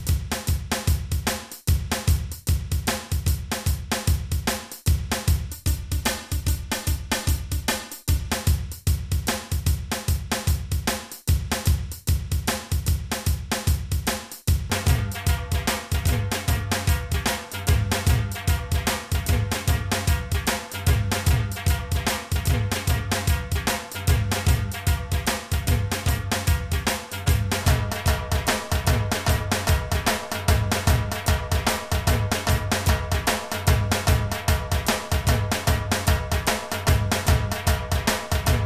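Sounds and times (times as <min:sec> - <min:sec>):
dhol drum loop: 0:00.0 - 0:38.6.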